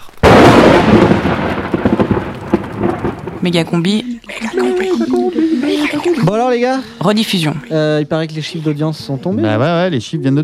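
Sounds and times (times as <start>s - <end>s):
rain hiss: 0.0s - 8.9s
thunder crack and rumble: 0.2s - 4.0s
speech: 3.4s - 10.4s
laughter: 4.0s - 7.8s, 8.5s - 10.4s.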